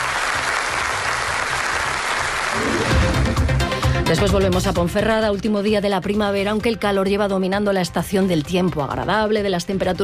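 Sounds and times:
applause welcoming a woman: 0.0 - 3.5
speech: 4.1 - 10.0.

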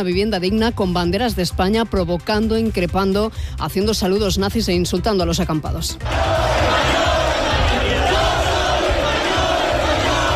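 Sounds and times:
speech: 0.0 - 7.0
large crowd chanting a slogan: 6.0 - 10.3.

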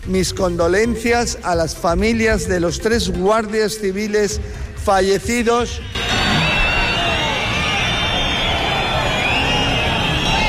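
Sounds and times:
speech: 0.1 - 6.0
crowd booing and whistling: 5.7 - 10.4.

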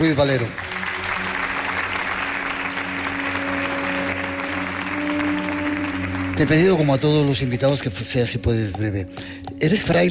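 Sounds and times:
audience applause: 0.0 - 7.4
speech: 0.1 - 0.7, 6.4 - 10.1.

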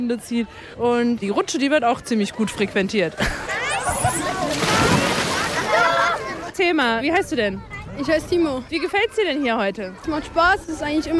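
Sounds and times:
speech: 0.0 - 5.0, 6.6 - 11.1
children splashing water in a swimming pool: 3.1 - 6.5.

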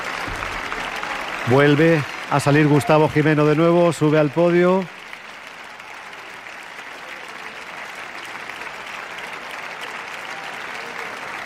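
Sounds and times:
concert audience applause: 0.0 - 11.4
speech: 1.5 - 5.0.

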